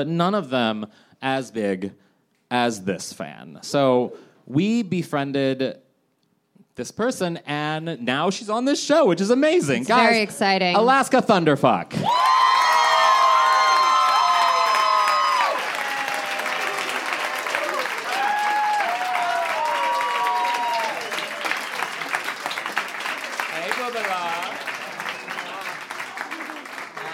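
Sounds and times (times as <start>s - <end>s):
speech: 0.0s - 5.8s, 6.8s - 12.4s
whoops and cheers: 12.0s - 21.9s
crowd clapping: 12.0s - 27.1s.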